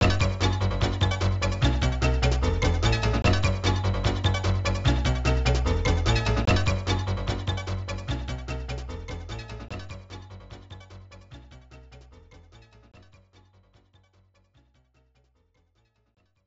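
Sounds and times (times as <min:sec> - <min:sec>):
main background music: 0:00.0 - 0:15.1.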